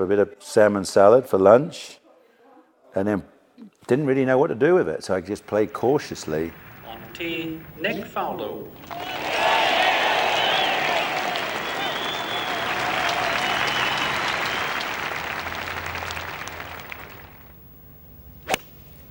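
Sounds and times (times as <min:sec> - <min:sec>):
speech: 0:00.0 - 0:02.0, 0:02.9 - 0:09.3
large golf gallery clapping: 0:05.4 - 0:17.5
sharp isolated crack: 0:18.4 - 0:18.8.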